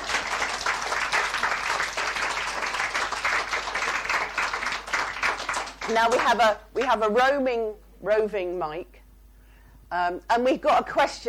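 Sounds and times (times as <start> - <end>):
audience clapping: 0.0 - 7.0
speech: 5.9 - 9.0, 9.9 - 11.2.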